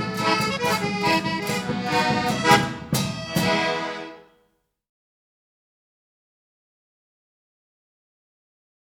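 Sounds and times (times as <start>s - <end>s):
polka music: 0.0s - 4.4s.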